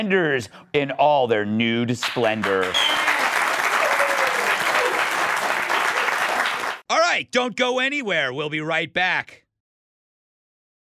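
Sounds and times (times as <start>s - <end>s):
speech: 0.0s - 3.1s, 7.2s - 9.4s
audience applauding: 2.0s - 6.8s.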